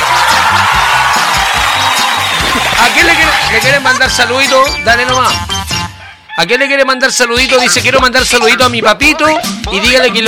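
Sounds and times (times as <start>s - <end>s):
recorded applause sound effect: 0.0s - 4.1s
speech: 2.8s - 5.5s, 6.4s - 10.2s.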